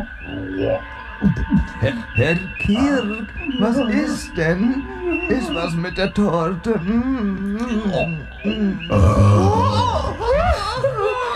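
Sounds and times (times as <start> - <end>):
speech: 0.6 - 10.2
laughter: 1.2 - 11.3
small burp: 8.9 - 9.7.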